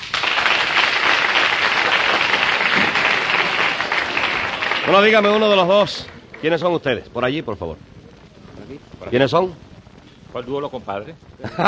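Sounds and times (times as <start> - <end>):
crowd applause: 0.0 - 7.2
speech: 4.9 - 7.9, 8.6 - 9.6, 10.3 - 11.6
laughter: 11.4 - 11.6.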